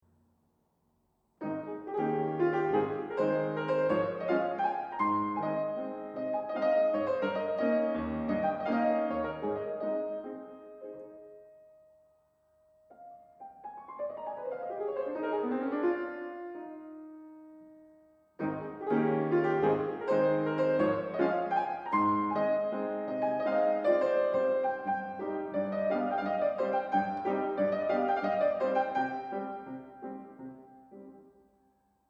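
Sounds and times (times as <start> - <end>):
piano trio: 1.4 - 12.1, 12.8 - 31.4.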